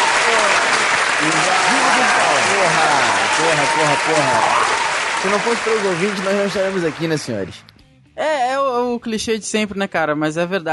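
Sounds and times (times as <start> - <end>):
applause sound effect: 0.0 - 7.6
speech: 2.6 - 4.6, 5.2 - 7.7, 8.9 - 10.7.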